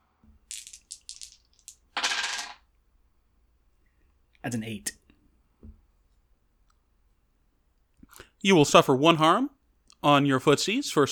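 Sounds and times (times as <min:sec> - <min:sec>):
dice rolling on a hard surface: 0:00.5 - 0:02.6
speech: 0:04.4 - 0:05.0, 0:08.4 - 0:11.0.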